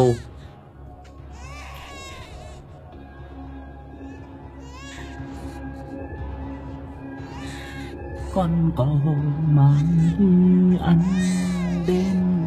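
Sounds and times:
speech: 0.0 - 0.3, 8.4 - 12.2
baby crying loudly: 1.3 - 2.6, 4.6 - 5.8, 7.1 - 8.0, 10.8 - 12.3.

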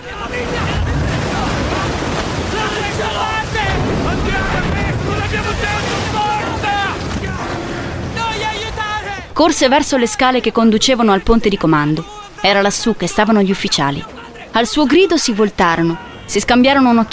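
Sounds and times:
rain: 0.0 - 10.5, 14.0 - 17.1
storm wind: 0.0 - 17.1
stormy sea roaring around a sinking ship: 0.0 - 17.1
waves surging: 0.0 - 17.1
speech: 9.4 - 17.1.

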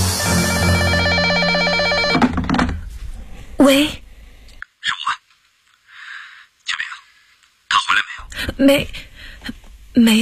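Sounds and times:
telephone ringing: 0.2 - 2.5
speech: 3.6 - 4.0, 8.6 - 10.2.

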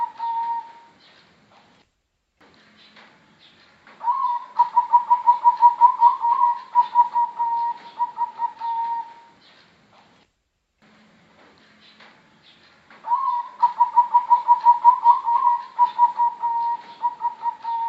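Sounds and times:
Bangkok type zebra dove singing quick evenly pulsed coos: 0.0 - 1.0, 4.0 - 9.4, 13.0 - 17.8.

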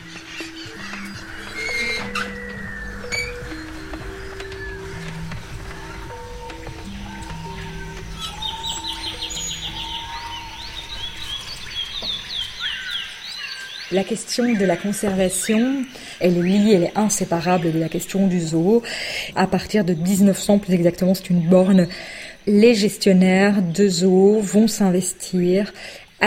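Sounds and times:
low sustained hooting tones of birds: 0.0 - 20.4
flock of birds chirping and trilling at feeding time: 0.0 - 26.2
speech: 13.9 - 26.2.

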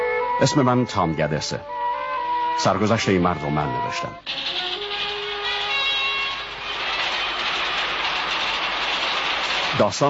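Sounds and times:
speech: 0.4 - 1.8, 2.6 - 4.7, 9.8 - 10.0
1912 train carrying prisoners from Washington State prison, rail rumble: 4.3 - 10.0.

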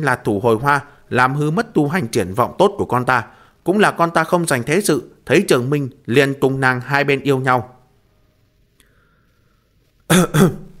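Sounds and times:
speech: 0.0 - 7.8, 10.1 - 10.7
angry choking cough: 10.1 - 10.7.

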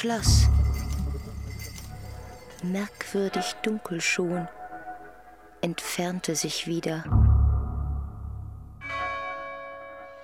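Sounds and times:
speech: 0.0 - 0.6, 2.6 - 4.6, 5.6 - 7.2
bell ringing: 0.0 - 3.9.

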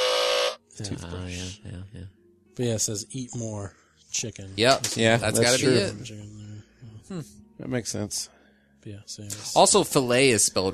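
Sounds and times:
electric toothbrush buzzing: 0.0 - 0.6
speech: 0.8 - 10.7.

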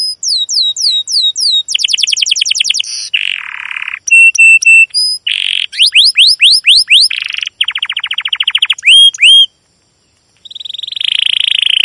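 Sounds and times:
domestic canary singing: 0.0 - 9.5, 10.4 - 11.8.

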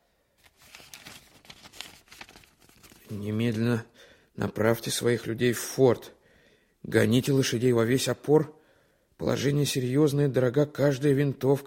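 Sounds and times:
sheet of paper document rustling and crinkling as it is unfolded: 0.4 - 3.7
speech: 3.1 - 6.2, 6.8 - 8.6, 9.2 - 11.6.

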